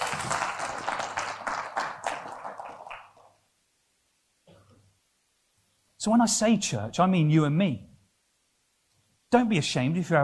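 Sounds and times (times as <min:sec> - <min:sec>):
round of applause: 0:00.0 - 0:03.4
speech: 0:06.0 - 0:07.9, 0:09.3 - 0:10.2.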